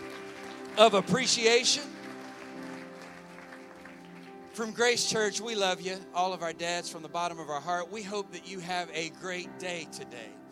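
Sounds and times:
applause for fathers: 0.0 - 5.0
speech: 0.8 - 2.0, 4.6 - 10.4.

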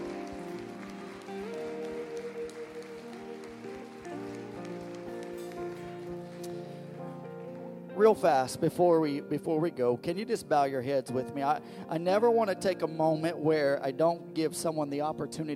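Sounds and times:
audience clapping hands in praise: 0.0 - 7.6
speech: 8.0 - 15.5.

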